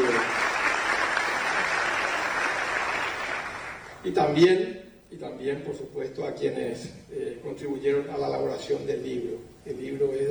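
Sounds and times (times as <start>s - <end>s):
audience applause: 0.0s - 4.0s
speech: 4.0s - 10.3s.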